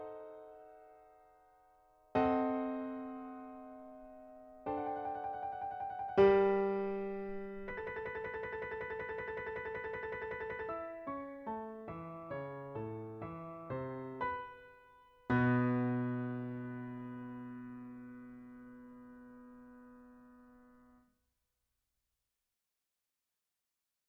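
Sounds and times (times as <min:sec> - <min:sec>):
piano passage: 0:02.2 - 0:20.9.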